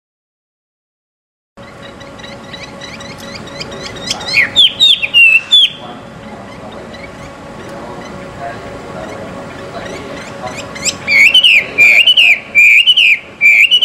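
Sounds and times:
Chinese hwamei song: 1.6s - 5.8s, 9.8s - 13.8s.

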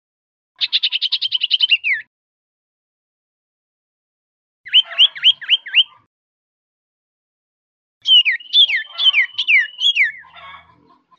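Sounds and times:
cipoh bird whistling used as a lure for bird catching: 0.6s - 2.1s, 4.7s - 6.1s, 8.0s - 10.3s.

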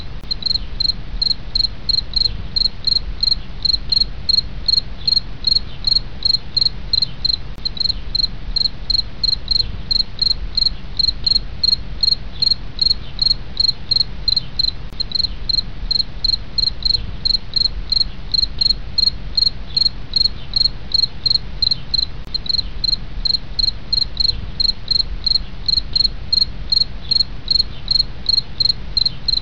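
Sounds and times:
field cricket chirping: 0.0s - 29.4s.

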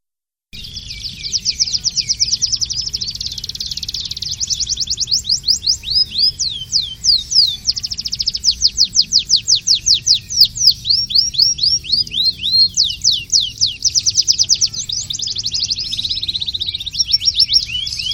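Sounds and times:
canary singing: 0.6s - 18.1s.

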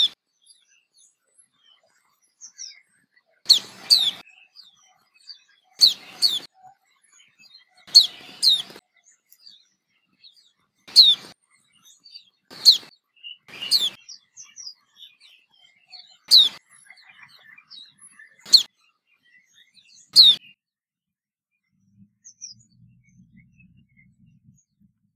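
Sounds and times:
white-eye chirping: 3.5s - 4.2s, 5.8s - 6.5s, 7.9s - 8.8s, 10.9s - 11.4s, 12.5s - 12.9s, 13.5s - 14.0s, 16.2s - 16.6s, 18.4s - 18.7s, 20.2s - 20.4s.

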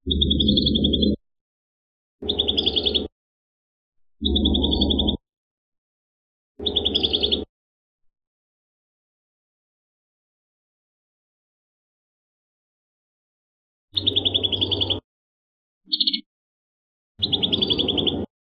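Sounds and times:
prinia singing trills: 0.0s - 1.2s, 2.2s - 3.1s, 4.2s - 5.2s, 6.6s - 7.5s, 14.0s - 15.0s, 15.9s - 16.2s, 17.2s - 18.3s.

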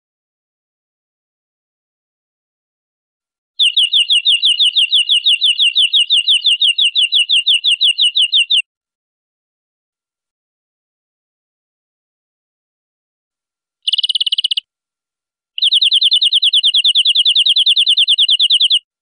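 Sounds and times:
European greenfinch buzzy trill: 3.6s - 8.6s, 13.9s - 14.6s, 15.6s - 18.8s.

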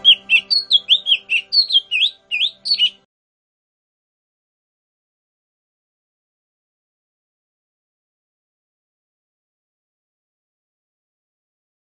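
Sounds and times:
Lesser green leafbird singing whistles, chirps and buzzy chatter: 0.0s - 3.0s.

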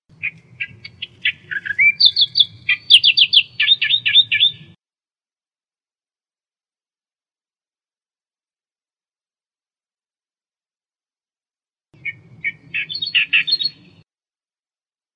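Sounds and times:
Australian reed warbler song: 0.1s - 4.8s, 12.0s - 14.0s.

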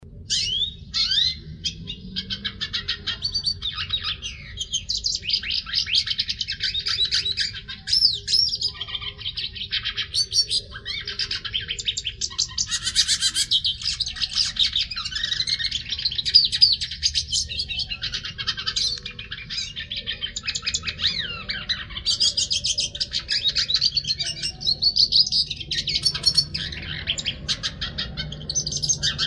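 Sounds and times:
hooded siskin singing buzzy twitter: 0.1s - 29.2s.

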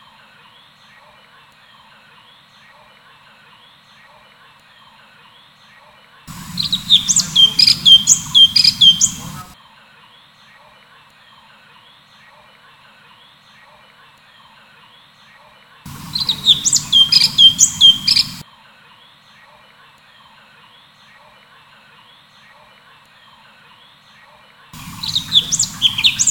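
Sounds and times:
cucak cungkok bird chirping: 6.3s - 9.6s, 15.9s - 18.4s, 24.8s - 26.2s.

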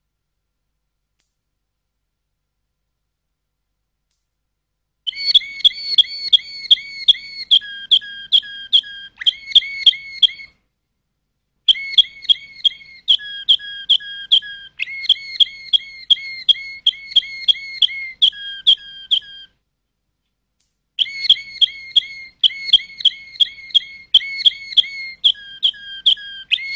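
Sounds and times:
Waterslager canary song: 5.0s - 10.6s, 11.6s - 19.6s, 21.0s - 26.7s.

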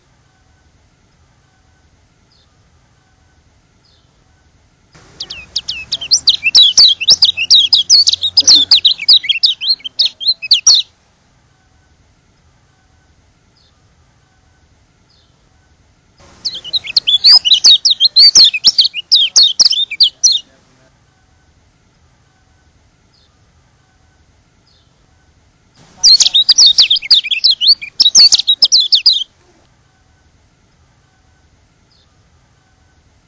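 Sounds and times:
white-eye twittering song: 5.0s - 10.9s, 16.2s - 20.5s, 25.8s - 29.3s.

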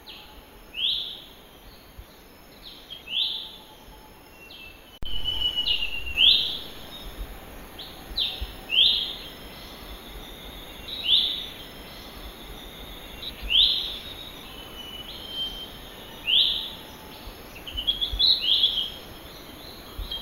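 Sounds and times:
cucak hijau mini calling in the wild: 4.7s - 20.1s.

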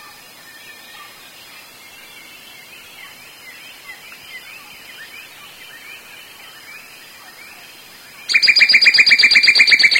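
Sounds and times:
Sooty-headed Bulbul calling: 2.7s - 9.9s.

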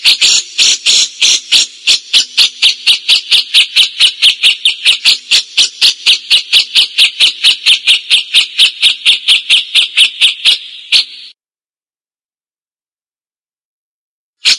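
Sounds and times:
Cililin repeating a harsh scratchy note: 0.0s - 11.3s.

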